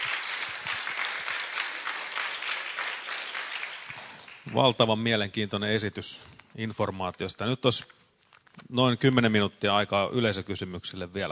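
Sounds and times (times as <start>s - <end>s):
audience applause: 0.0s - 4.8s
speech: 4.5s - 8.0s, 8.7s - 11.2s.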